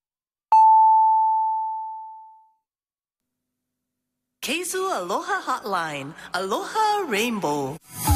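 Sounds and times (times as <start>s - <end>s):
6 o'clock time signal beep from an FM radio station: 0.5s - 2.4s
speech: 4.5s - 8.0s.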